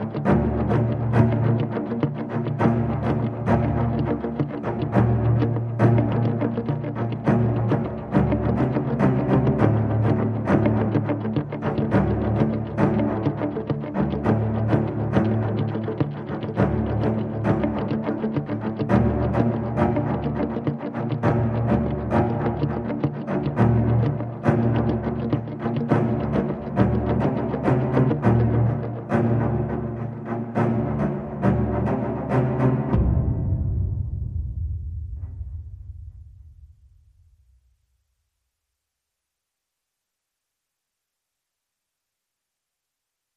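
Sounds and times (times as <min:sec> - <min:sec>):
guitars: 0:00.0 - 0:33.4
strings: 0:00.0 - 0:36.2.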